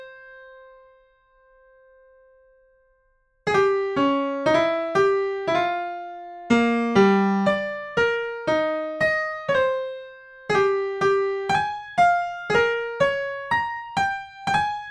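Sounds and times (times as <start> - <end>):
improvised melody: 3.5 - 14.7.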